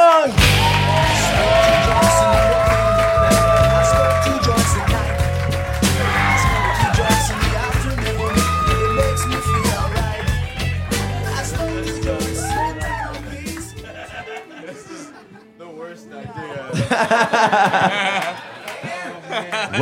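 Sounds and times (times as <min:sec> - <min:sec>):
crowd cheering and yelling as guests are welcomed: 0:00.0 - 0:14.6
laughter: 0:00.7 - 0:19.7.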